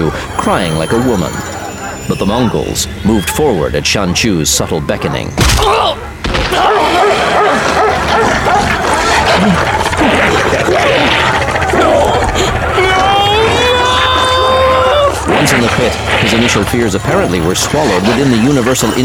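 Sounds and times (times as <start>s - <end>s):
speech: 0.0s - 1.5s, 2.1s - 8.8s, 9.4s - 12.5s, 15.4s - 19.0s
dogs whining: 0.0s - 19.0s
dogs barking and snarling: 0.9s - 2.6s, 5.9s - 19.0s.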